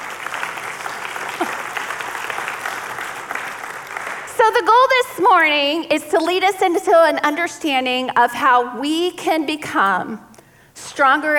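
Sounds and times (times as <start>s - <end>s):
audience applause: 0.0s - 4.3s
person whooping: 1.3s - 1.8s
speech: 4.5s - 10.3s, 11.0s - 11.3s.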